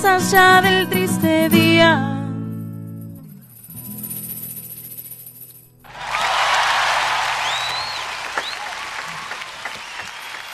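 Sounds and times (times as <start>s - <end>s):
speech: 0.2s - 2.1s
audience applause: 5.8s - 10.4s.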